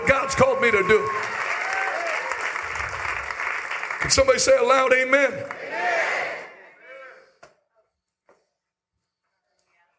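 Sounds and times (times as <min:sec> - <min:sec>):
audience applause in auditorium: 0:00.0 - 0:06.3
speech: 0:00.3 - 0:01.4, 0:04.1 - 0:06.0.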